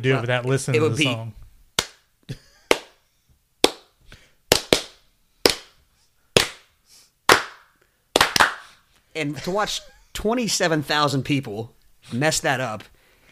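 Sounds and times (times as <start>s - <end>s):
speech: 0.0s - 1.4s, 9.2s - 12.9s
hand-clap rhythm from a song performed alone: 1.8s - 3.0s, 3.6s - 5.8s, 6.4s - 6.7s, 7.3s - 8.7s.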